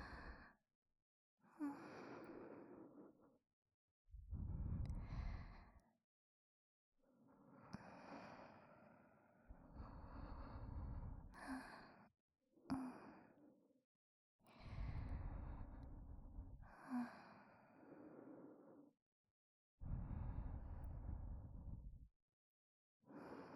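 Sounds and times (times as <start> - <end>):
person breathing softly beside the listener for sleep: 0.0 - 0.6, 1.5 - 3.4, 4.2 - 5.9, 7.5 - 12.1, 12.7 - 13.5, 14.5 - 18.9, 19.8 - 22.0, 23.1 - 23.5.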